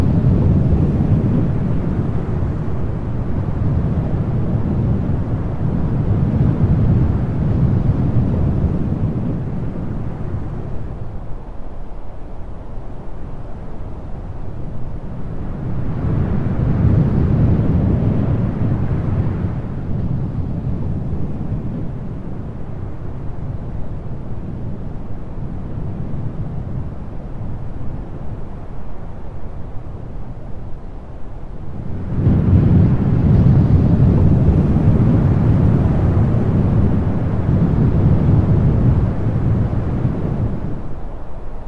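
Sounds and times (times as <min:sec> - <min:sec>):
wind: 0:00.0 - 0:41.6.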